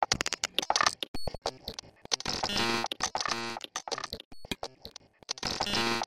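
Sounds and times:
quick clicks: 0.0s - 5.8s.

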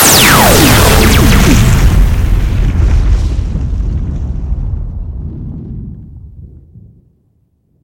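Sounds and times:
knockout blaster shots: 0.0s - 3.9s.

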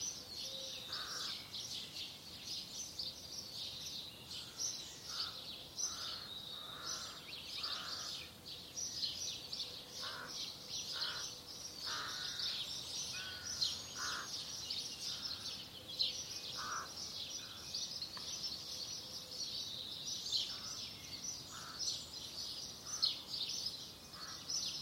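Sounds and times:
beautiful carefree heavenly birdsong: 0.0s - 24.8s
crows cawing: 0.9s - 1.4s, 4.4s - 8.3s, 10.0s - 15.5s, 16.6s - 17.7s, 21.5s - 22.0s, 24.1s - 24.5s.

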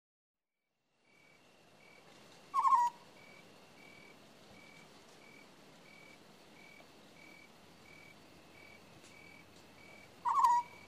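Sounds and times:
owl screeching: 2.5s - 3.0s, 10.2s - 10.8s.

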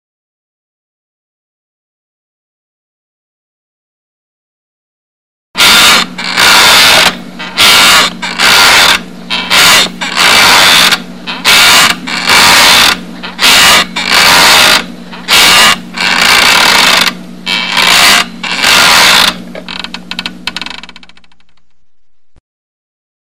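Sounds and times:
annoying noises for neighbours: 5.6s - 21.4s.

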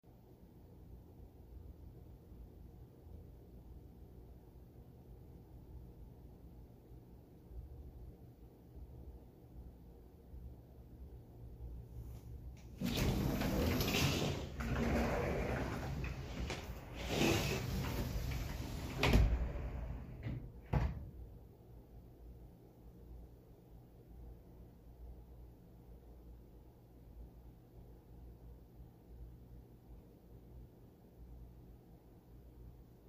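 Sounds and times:
patio doors opening: 12.6s - 21.2s.

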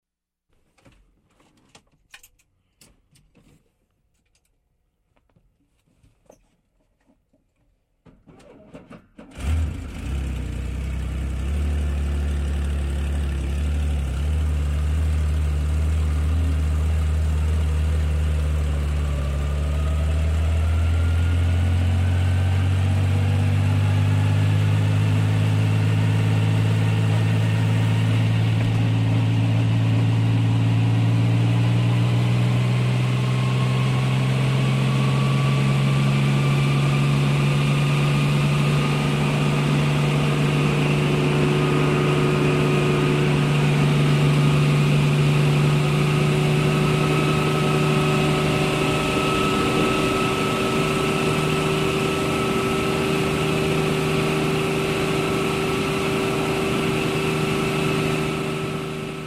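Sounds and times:
helicopter starting and taking off heard from an aircraft: 9.3s - 59.2s.

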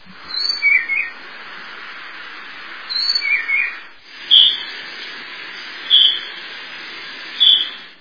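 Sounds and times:
finch chirping calmly in nature: 0.3s - 1.1s, 2.9s - 4.6s, 5.9s - 6.3s, 7.4s - 7.8s.

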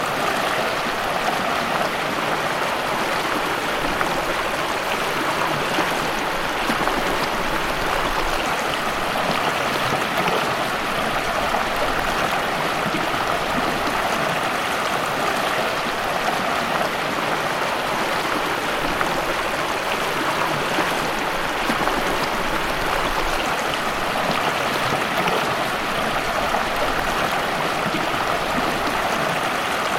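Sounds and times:
mountain waterfall: 0.0s - 29.9s.

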